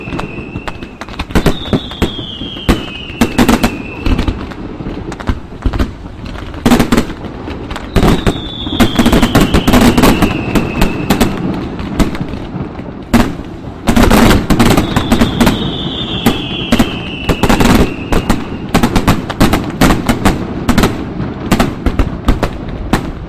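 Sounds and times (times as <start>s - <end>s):
fireworks: 0.0s - 23.2s.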